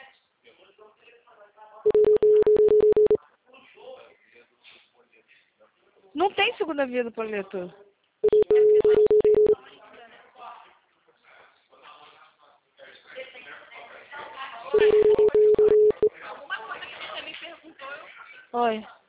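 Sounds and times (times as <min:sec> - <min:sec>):
telephone keypad dialing tones placing a call: 0:01.9 - 0:03.2, 0:08.2 - 0:09.6, 0:14.8 - 0:16.1
speech: 0:06.4 - 0:07.9.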